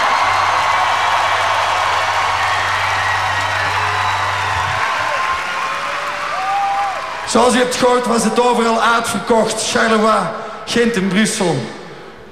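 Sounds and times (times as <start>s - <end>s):
audience applause and cheering: 0.0s - 8.2s
speech: 7.3s - 11.8s.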